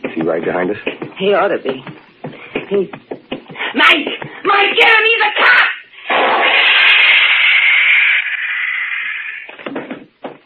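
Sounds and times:
speech: 0.2 - 1.9, 2.7 - 3.1, 3.7 - 5.7
stun gun blast electric buzz in a radio drama: 6.0 - 9.6.

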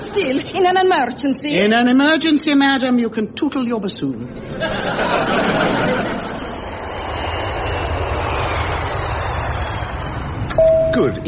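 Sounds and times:
laughter: 0.0 - 0.9, 4.3 - 6.7
speech: 0.2 - 6.2, 11.0 - 11.2
airliner engine drone in flight before landing in Gdansk: 4.2 - 11.2.

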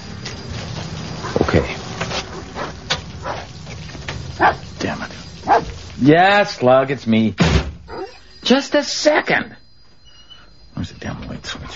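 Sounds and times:
dog barking in bursts: 4.4 - 4.7, 5.4 - 5.8
speech: 6.0 - 7.5, 8.5 - 9.6.

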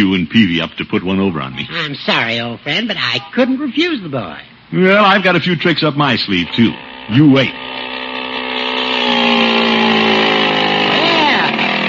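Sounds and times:
speech: 0.0 - 7.9
small motor on a motorized bicycle running: 6.1 - 11.8.

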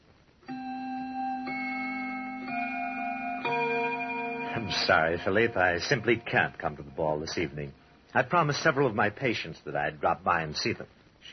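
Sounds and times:
grandfather clock chiming: 0.5 - 8.0
speech: 4.6 - 11.3.

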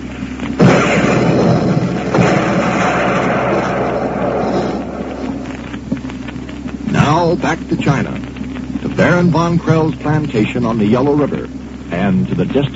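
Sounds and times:
gun blast sound effect: 0.6 - 5.9
speech: 7.3 - 8.2, 9.0 - 12.7.

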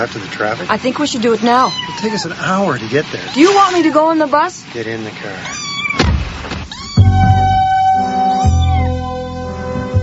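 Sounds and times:
speech: 0.0 - 5.7
kitten meowing: 1.4 - 2.6, 3.2 - 4.4, 5.4 - 9.4.

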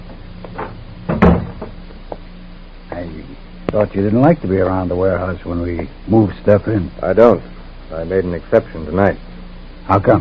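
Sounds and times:
soft knocks: 0.5 - 2.2
door being pulled shut in a warehouse: 0.6 - 1.8
speech: 3.2 - 9.3, 9.9 - 10.1.

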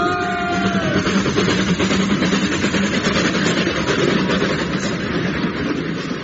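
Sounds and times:
men cheering: 0.0 - 1.1
goods train passing: 0.0 - 6.2.

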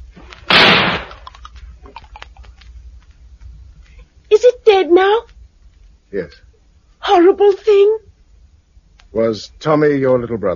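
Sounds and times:
gunshot fired at a creature in a garden: 0.5 - 1.3
speech: 4.8 - 5.3, 6.1 - 6.5, 7.1 - 8.1, 9.1 - 10.5.

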